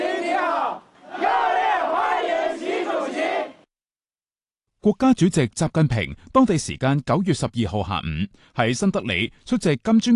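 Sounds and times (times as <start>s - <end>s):
crowd of overseas Chinese and Chinese company representatives chanting in unison in New Delhi: 0.0s - 3.7s
speech: 4.8s - 10.1s.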